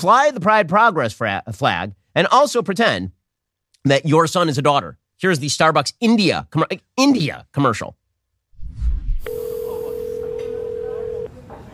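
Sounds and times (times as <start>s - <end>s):
speech: 0.0s - 3.2s, 3.8s - 8.0s
phone call ringing tone: 9.2s - 11.3s.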